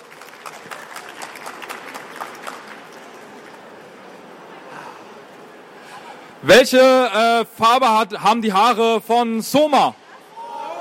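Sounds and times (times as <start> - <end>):
small crowd clapping: 0.0 - 3.7
speech: 6.4 - 10.0.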